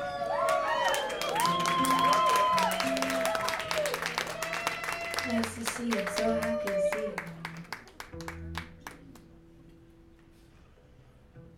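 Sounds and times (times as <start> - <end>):
high whoops and cheering voices: 0.0 - 7.6
audience applause: 0.0 - 9.3
speech: 5.8 - 6.7.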